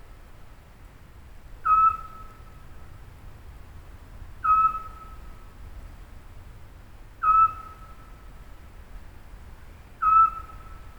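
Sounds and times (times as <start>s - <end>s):
Eurasian scops owl calling: 1.6s - 2.6s, 4.4s - 5.3s, 7.2s - 8.2s, 10.0s - 10.9s.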